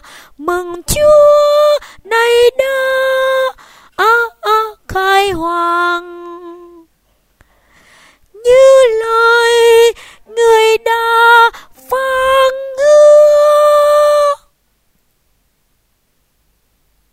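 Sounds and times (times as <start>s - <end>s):
tenor singing: 0.0s - 6.9s, 8.3s - 14.5s.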